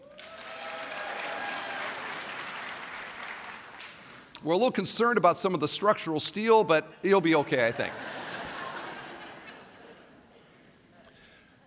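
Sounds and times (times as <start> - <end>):
auditorium audience clapping: 0.0 - 4.4
speech: 4.4 - 8.2
laughter: 7.6 - 10.7.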